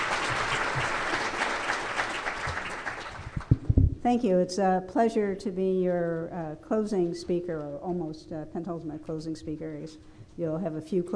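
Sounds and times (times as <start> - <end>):
audience applause welcoming the closing speaker: 0.0 - 3.7
low thumps: 3.3 - 4.1
speech: 4.0 - 11.1.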